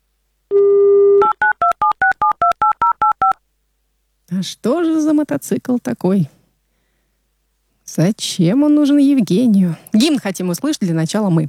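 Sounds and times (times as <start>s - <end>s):
phone dial tone: 0.5s - 3.4s
speech: 4.4s - 6.4s, 7.9s - 11.4s.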